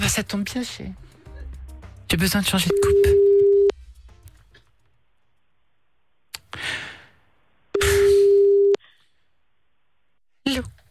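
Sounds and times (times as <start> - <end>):
speech: 0.1 - 1.2, 2.1 - 3.2
telephone ringing tone on an outgoing call: 2.7 - 3.7, 8.2 - 8.8.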